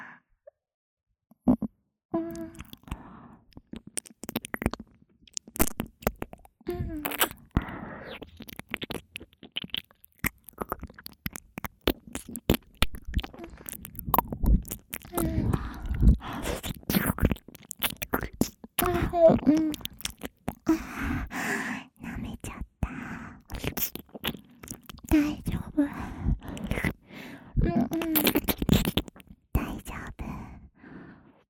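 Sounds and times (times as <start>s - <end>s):
nipple massage sounds: 1.4s - 30.6s.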